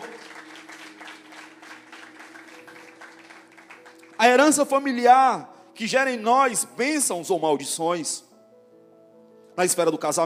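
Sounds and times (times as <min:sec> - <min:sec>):
audience applause: 0:00.0 - 0:04.2
speech: 0:04.2 - 0:08.3, 0:09.6 - 0:10.2.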